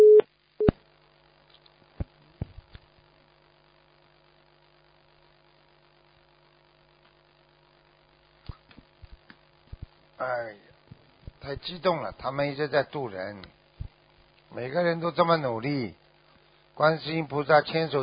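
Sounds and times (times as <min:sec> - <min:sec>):
telephone busy tone after call disconnects: 0:00.0 - 0:00.7
speech: 0:11.5 - 0:13.6, 0:14.6 - 0:16.0, 0:16.8 - 0:18.0.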